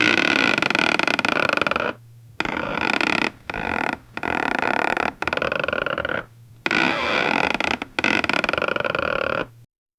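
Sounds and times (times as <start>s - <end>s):
realistic wooden rocking creak: 0.0s - 9.7s.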